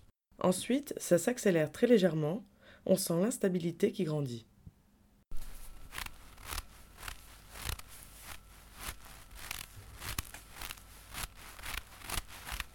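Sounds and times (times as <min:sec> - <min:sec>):
speech: 0:00.4 - 0:04.5
dull heavy footsteps in soft snow: 0:05.3 - 0:12.7.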